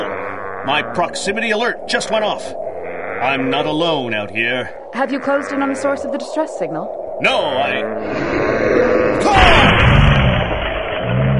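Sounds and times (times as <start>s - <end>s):
speech: 0.6s - 2.6s, 3.2s - 10.0s
huge creature smashing into a sled: 9.2s - 11.3s.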